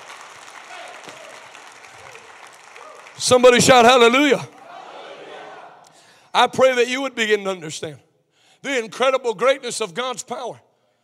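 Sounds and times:
congregation applauding during a Sunday night church service: 0.0s - 5.8s
speech: 3.2s - 4.6s, 6.4s - 8.0s, 8.6s - 10.7s.

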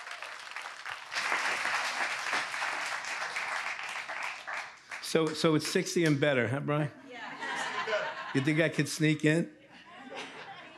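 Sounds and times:
applause welcoming a lead pastor: 0.0s - 6.2s
speech: 5.1s - 7.0s, 8.4s - 9.6s
laughter: 7.0s - 10.7s.

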